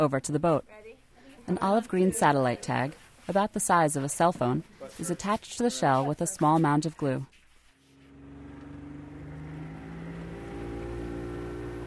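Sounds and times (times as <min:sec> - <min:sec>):
speech: 0:00.0 - 0:00.9, 0:01.5 - 0:07.4
boat heading out into the bay: 0:07.9 - 0:11.8.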